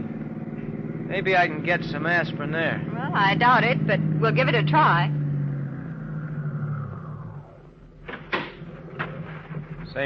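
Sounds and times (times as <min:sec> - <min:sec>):
car engine idling: 0:00.0 - 0:10.0
speech: 0:01.1 - 0:05.2
sharp clunks: 0:08.0 - 0:10.0.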